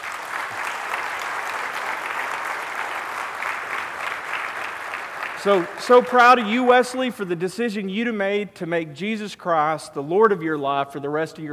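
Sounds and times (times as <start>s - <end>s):
audience applause: 0.0s - 6.9s
speech: 5.4s - 11.5s.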